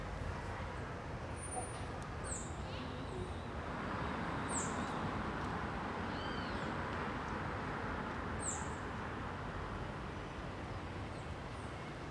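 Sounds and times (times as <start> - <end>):
urban ambience in residential block near car entrance: 0.0 - 12.0.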